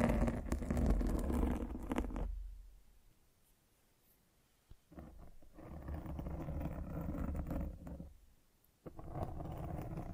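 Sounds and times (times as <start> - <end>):
microphone scratching: 0.0 - 2.4, 4.9 - 8.1, 8.9 - 10.1.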